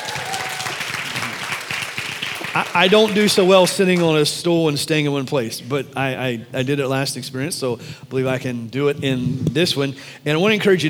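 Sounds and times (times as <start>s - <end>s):
audience clapping: 0.0s - 4.2s
speech: 2.6s - 10.8s.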